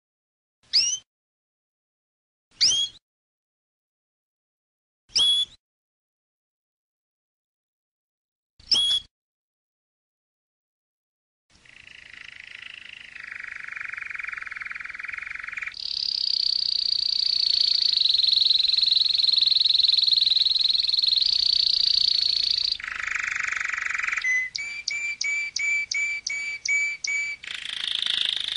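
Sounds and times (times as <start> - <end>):
canary singing trills and whistled notes: 0.7 - 1.0, 2.6 - 3.0, 11.6 - 28.5.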